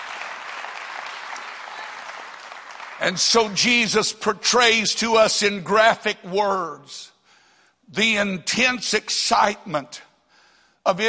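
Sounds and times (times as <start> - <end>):
audience clapping hands: 0.0 - 4.0
speech: 3.0 - 7.1, 7.9 - 10.1, 10.8 - 11.0.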